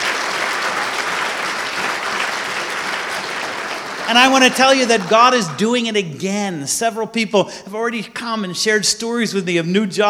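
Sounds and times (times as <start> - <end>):
audience applause: 0.0 - 6.1
speech: 4.1 - 10.0.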